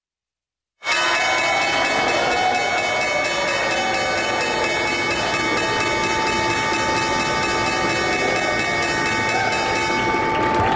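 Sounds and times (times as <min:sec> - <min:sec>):
stock exchange opening bell ringing: 0:00.9 - 0:10.7.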